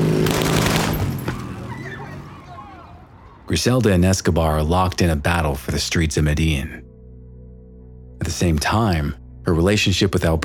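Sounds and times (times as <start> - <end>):
rapid burst of gunshots in a motorcycle drive-by: 0.0 - 1.6
speech: 3.5 - 6.9, 8.2 - 10.4.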